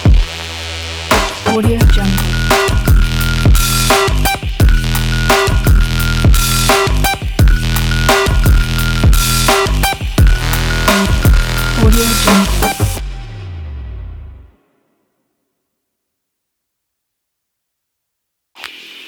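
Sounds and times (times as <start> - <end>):
stylish sport dirty trap music: 0.2 - 13.5.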